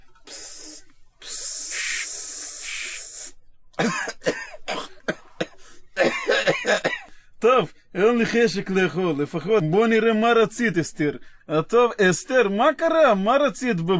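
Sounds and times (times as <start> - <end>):
deodorant spray hissing: 0.3 - 3.4
harsh coughing: 3.8 - 7.2
speech: 7.5 - 13.9.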